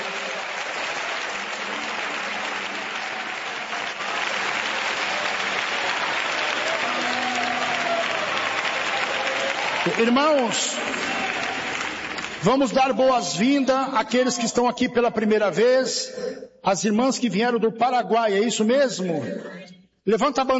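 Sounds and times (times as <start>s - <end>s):
audience clapping hands in praise: 0.0s - 13.5s
speech: 9.9s - 11.2s, 12.4s - 20.5s.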